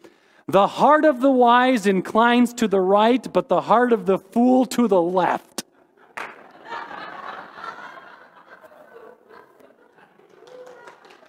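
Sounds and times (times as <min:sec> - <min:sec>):
speech: 0:00.5 - 0:05.5
laughter: 0:05.7 - 0:11.2
audience clapping: 0:06.1 - 0:06.8, 0:09.6 - 0:11.2.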